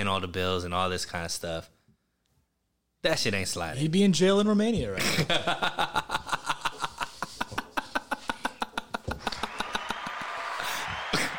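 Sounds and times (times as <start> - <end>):
speech: 0.0 - 1.8, 3.0 - 6.0
laughter: 5.0 - 11.3
applause: 9.2 - 11.3
canned crowd cheer sound effect from button: 9.2 - 11.3.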